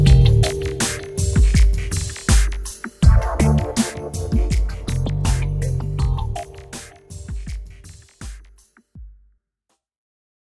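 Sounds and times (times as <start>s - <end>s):
instrumental electronica mix: 0.0s - 8.3s.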